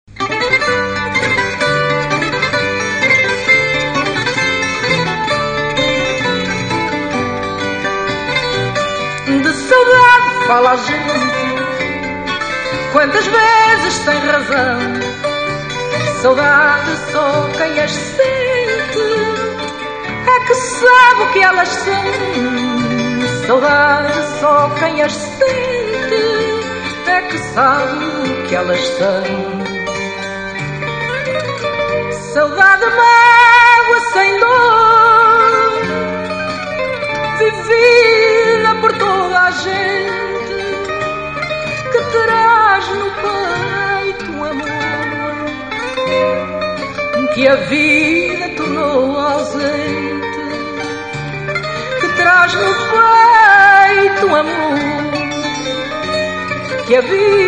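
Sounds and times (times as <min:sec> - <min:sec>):
fado music: 0:00.0 - 0:57.4.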